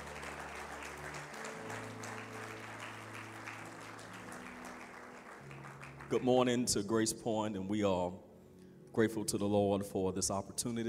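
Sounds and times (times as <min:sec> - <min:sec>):
audience clapping: 0:00.0 - 0:06.6
speech: 0:06.1 - 0:08.3, 0:09.0 - 0:10.8.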